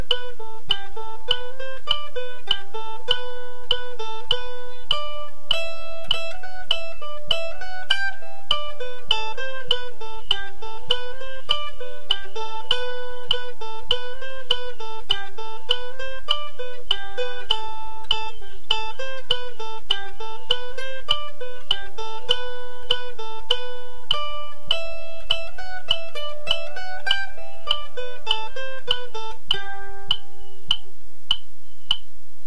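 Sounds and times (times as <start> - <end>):
mandolin playing a reel: 0.0 - 30.7.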